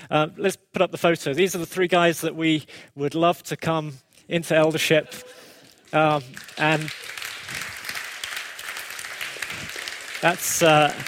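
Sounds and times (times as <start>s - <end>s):
speech: 0.1s - 7.6s, 10.2s - 11.0s
church congregation clapping for three men proposed as elders: 5.2s - 11.0s.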